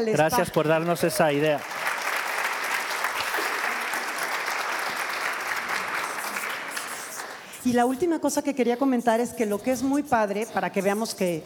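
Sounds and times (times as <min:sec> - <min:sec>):
speech: 0:00.0 - 0:01.7, 0:07.6 - 0:11.4
audience applause: 0:00.4 - 0:07.4.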